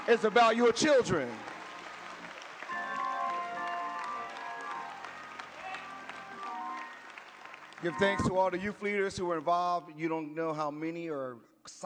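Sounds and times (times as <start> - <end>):
round of applause: 0.0 - 9.0
speech: 0.1 - 1.5, 7.8 - 11.8.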